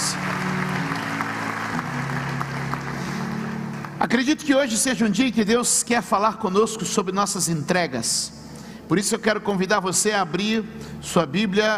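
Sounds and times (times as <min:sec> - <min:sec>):
audience applauding: 0:00.0 - 0:04.4
speech: 0:04.0 - 0:11.7.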